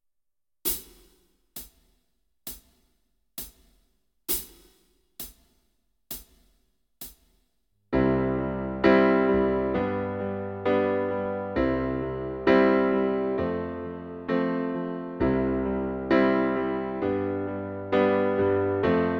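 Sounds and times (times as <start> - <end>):
keyboard backing track: 8.0 - 19.1.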